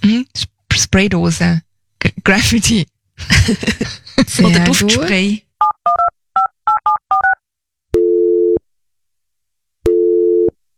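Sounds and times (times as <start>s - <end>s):
speech: 0.0s - 6.0s
buzzing telephone line tone: 8.0s - 8.6s, 9.9s - 10.6s.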